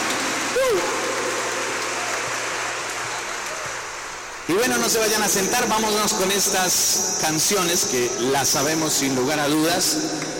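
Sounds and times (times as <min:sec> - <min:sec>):
crowd loud applause: 0:00.0 - 0:06.2
speech: 0:04.5 - 0:10.3.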